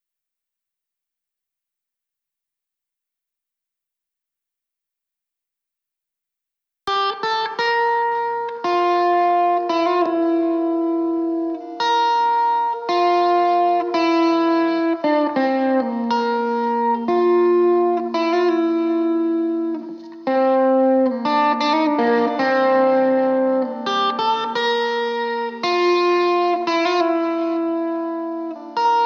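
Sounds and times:
guitar playing: 6.9 - 29.0.

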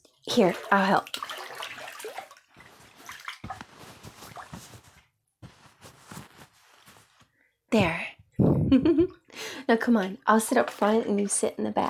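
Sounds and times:
water sloshing and splashing in a bathtub: 0.0 - 5.1, 9.8 - 11.8
speech: 0.3 - 1.2, 7.7 - 8.0, 9.7 - 11.8.

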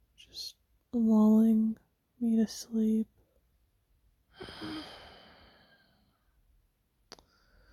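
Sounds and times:
speech: 0.2 - 3.2
soft airy exhale: 4.4 - 6.0.

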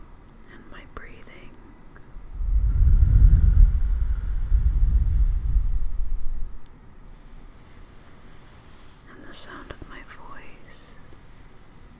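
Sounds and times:
heartbeat heard against the chest: 2.2 - 6.6.

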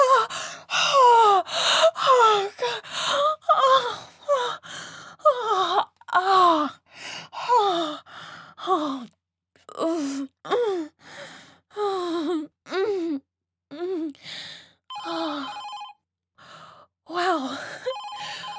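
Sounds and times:
breathy gasps and moaning vocal sounds: 0.0 - 15.6, 16.4 - 18.5
telephone ringing in warbling electronic bursts: 14.9 - 16.0, 17.9 - 18.5.

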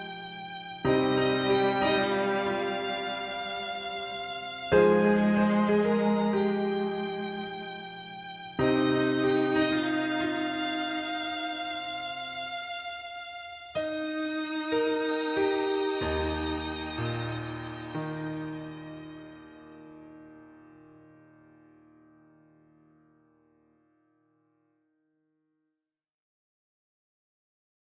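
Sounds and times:
semi-orchestral music: 0.0 - 20.1.

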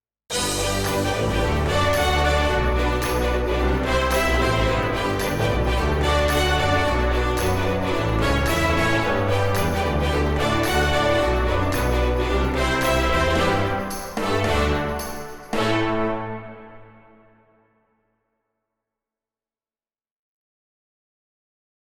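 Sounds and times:
orchestral instrumental music: 0.3 - 17.6.

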